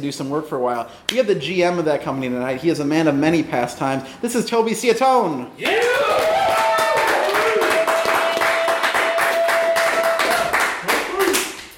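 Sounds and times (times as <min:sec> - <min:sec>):
speech: 0:00.0 - 0:06.3
audience applause: 0:05.6 - 0:11.7.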